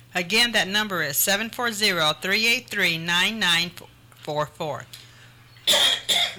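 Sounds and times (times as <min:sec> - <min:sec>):
speech: 0:00.2 - 0:05.0, 0:05.7 - 0:06.3
man coughing and choking: 0:05.7 - 0:06.3.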